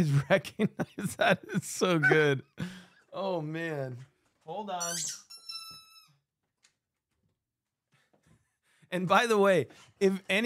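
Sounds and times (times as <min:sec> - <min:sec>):
speech: 0:00.0 - 0:05.3, 0:08.9 - 0:10.4
dog's squeaky toy being stepped on: 0:04.8 - 0:06.2.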